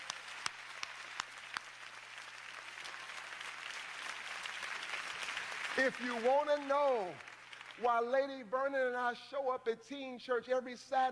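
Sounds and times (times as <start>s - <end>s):
audience applause: 0.0s - 8.0s
speech: 5.8s - 11.1s.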